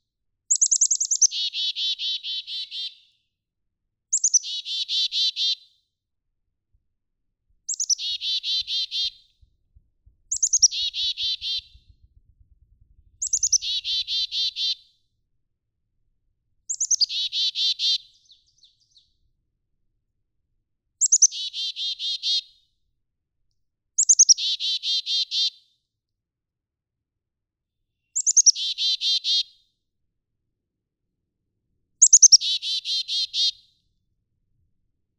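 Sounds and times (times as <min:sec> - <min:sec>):
black-capped chickadee calling: 0:00.6 - 0:03.0, 0:04.2 - 0:05.6, 0:07.7 - 0:09.2, 0:10.3 - 0:11.8, 0:13.2 - 0:14.8, 0:16.7 - 0:18.1, 0:21.0 - 0:22.4, 0:24.0 - 0:25.5, 0:28.2 - 0:29.4, 0:32.0 - 0:33.6
faint low rumble: 0:09.2 - 0:14.3.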